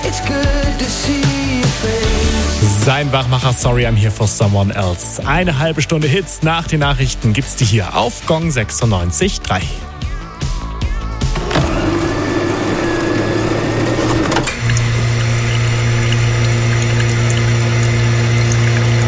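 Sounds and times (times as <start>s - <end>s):
speech: 0.1s - 9.9s
coffee machine pump buzzing as coffee pours: 11.3s - 19.0s.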